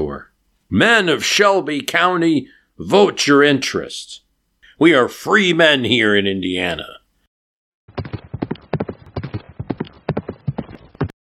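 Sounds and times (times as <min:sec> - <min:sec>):
speech: 0:00.0 - 0:04.2, 0:04.8 - 0:07.0
horse hooves clip-clopping on a hard road: 0:07.9 - 0:11.2.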